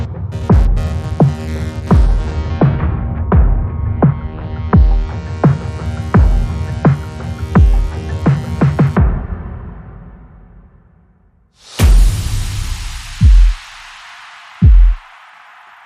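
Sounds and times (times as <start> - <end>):
drum hits: 0.5 - 7.0, 7.6 - 9.4, 11.8 - 13.8, 14.6 - 15.0.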